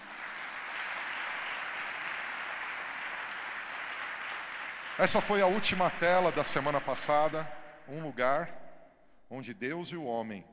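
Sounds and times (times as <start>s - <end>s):
audience applause: 0.0s - 6.8s
speech: 5.0s - 8.6s, 9.3s - 10.5s.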